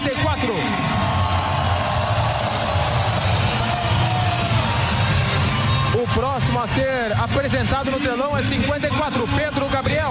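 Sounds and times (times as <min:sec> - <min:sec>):
large stadium crowd applauding and cheering: 0:00.0 - 0:07.9
speech: 0:06.6 - 0:10.1.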